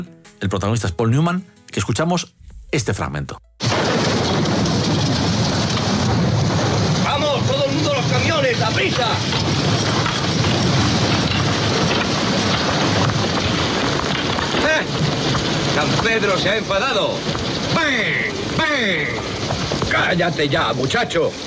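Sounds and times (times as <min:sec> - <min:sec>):
speech: 0:00.0 - 0:03.5, 0:08.5 - 0:09.9, 0:15.8 - 0:21.4
low rumble: 0:03.6 - 0:20.4
steady dense rain in a film scene: 0:03.6 - 0:21.4.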